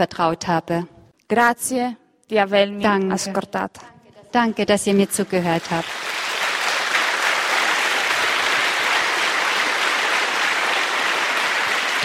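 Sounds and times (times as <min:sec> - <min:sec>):
speech: 0:00.0 - 0:06.1
audience applause: 0:05.6 - 0:12.0.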